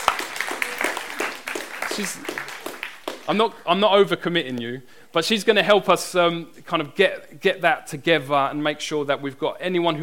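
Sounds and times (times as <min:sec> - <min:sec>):
audience applause: 0:00.0 - 0:03.3
speech: 0:02.0 - 0:02.4, 0:03.3 - 0:10.0.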